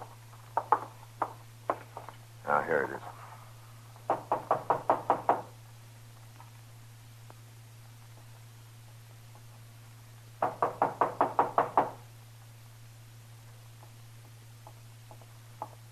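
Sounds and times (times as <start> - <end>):
knocking on a door: 0.6 - 1.8, 4.1 - 5.5, 10.4 - 12.0
speech: 2.5 - 3.2.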